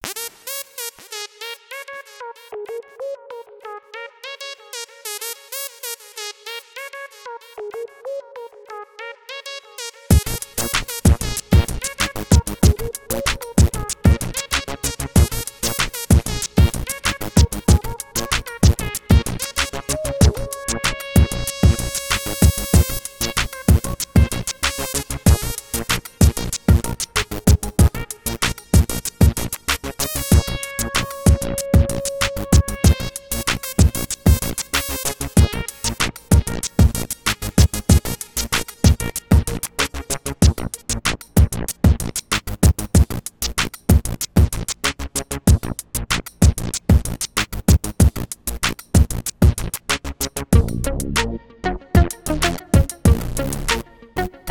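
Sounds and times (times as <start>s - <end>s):
groovy music: 0.0s - 54.4s.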